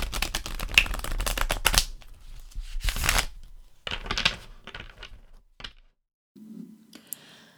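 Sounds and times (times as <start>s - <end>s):
cards being shuffled for a five-card reading: 0.0s - 5.9s.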